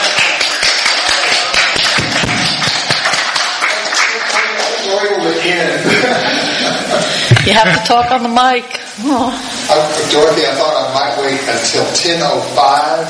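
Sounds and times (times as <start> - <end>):
audience clapping loudly: 0.0 - 5.3
laughter: 5.5 - 8.2
speech: 7.5 - 13.0.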